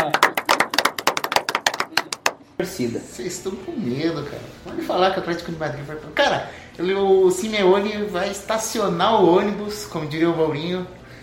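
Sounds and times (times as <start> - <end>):
hand clapping applause: 0.0 - 2.5
speech: 2.6 - 11.0.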